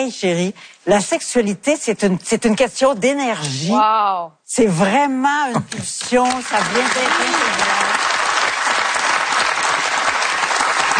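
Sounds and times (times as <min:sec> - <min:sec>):
speech: 0:00.0 - 0:07.9
audience applause: 0:06.2 - 0:10.9.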